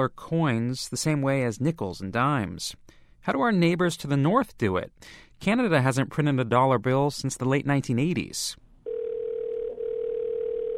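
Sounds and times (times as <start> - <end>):
speech: 0.0 - 8.6
telephone dial tone: 8.9 - 10.7.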